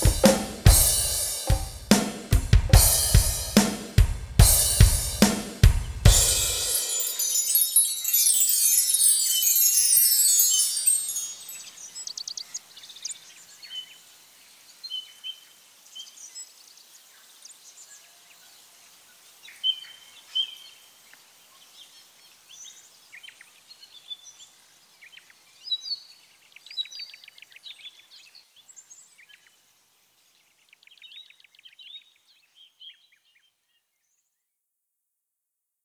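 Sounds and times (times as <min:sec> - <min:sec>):
ambient percussion: 0:00.0 - 0:11.7.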